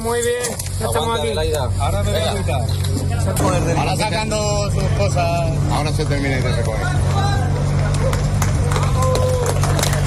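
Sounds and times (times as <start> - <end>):
speech: 0.0 - 8.2
applause during rescue ambulance loading: 7.8 - 10.0.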